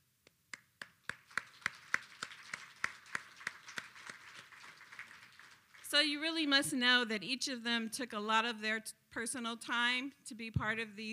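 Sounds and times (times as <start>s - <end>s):
audience applause: 0.8s - 6.2s
speech: 5.9s - 11.1s.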